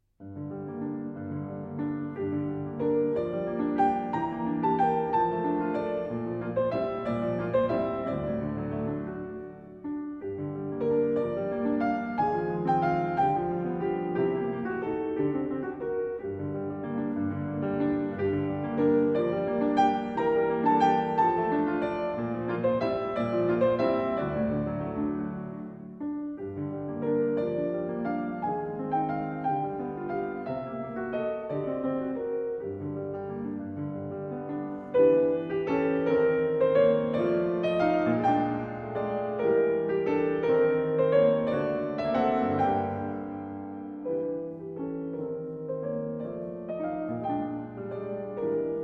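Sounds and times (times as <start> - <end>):
piano piece: 0.0 - 48.8.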